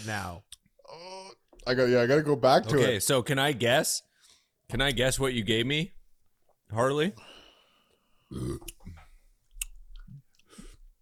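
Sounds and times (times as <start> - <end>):
speech: 0.0 - 4.1, 4.7 - 6.0, 6.7 - 7.3, 8.3 - 8.8
burp into the microphone: 8.3 - 9.1.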